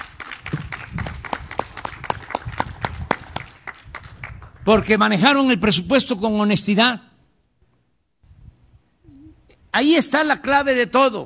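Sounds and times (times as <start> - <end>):
audience applause: 0.0 - 4.7
speech: 4.7 - 7.1, 9.8 - 11.2.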